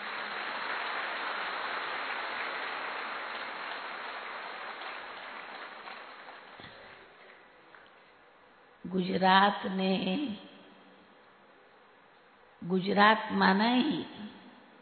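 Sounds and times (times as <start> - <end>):
audience clapping: 0.0 - 7.4
speech: 8.9 - 10.5, 12.7 - 14.4.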